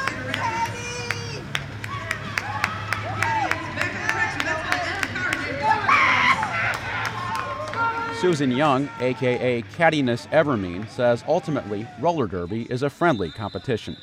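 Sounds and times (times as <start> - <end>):
hand claps: 0.0 - 5.4
sparse crowd cheering and shouting in a small arena: 0.0 - 13.9
speech: 8.2 - 14.0.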